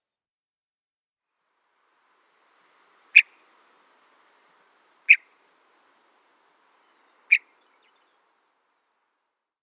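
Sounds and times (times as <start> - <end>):
meadowlark chatter with harsh buzzy notes: 1.8 - 9.1.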